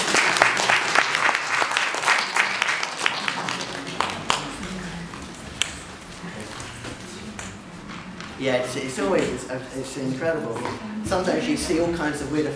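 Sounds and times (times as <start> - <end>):
audience applause: 0.0 - 5.6
speech: 8.4 - 12.5.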